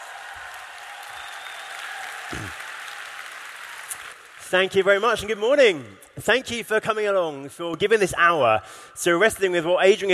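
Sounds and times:
audience applause welcoming a speaker at a Christian conference seminar: 0.0 - 4.5
speech: 2.3 - 2.6, 4.5 - 10.1.

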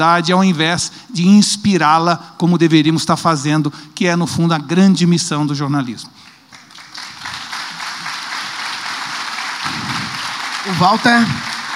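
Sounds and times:
speech: 0.0 - 6.3, 10.7 - 11.5
audience applauding: 6.4 - 11.7.

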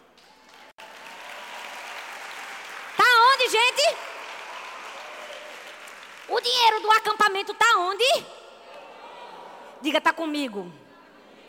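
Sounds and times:
audience applause: 0.0 - 6.3
speech: 3.5 - 4.1, 6.3 - 8.4, 9.8 - 10.8.

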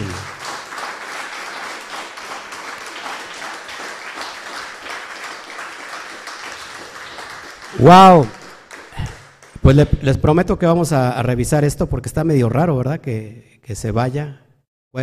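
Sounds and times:
audience applause: 0.0 - 9.8
speech: 7.8 - 8.4, 9.6 - 15.0.

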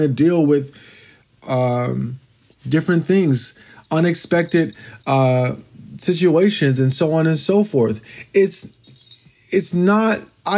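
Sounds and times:
speech: 0.0 - 8.9, 9.5 - 10.5
jingling from a dog moving: 2.8 - 5.2, 8.6 - 9.4.

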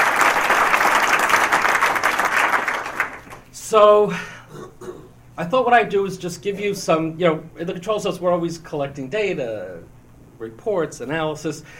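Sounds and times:
crowd applauding: 0.0 - 3.4
speech: 3.7 - 4.3, 5.4 - 11.7.

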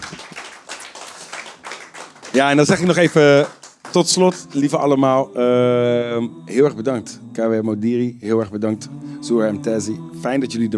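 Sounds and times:
audience applause: 0.0 - 5.3
speech: 2.3 - 10.7.

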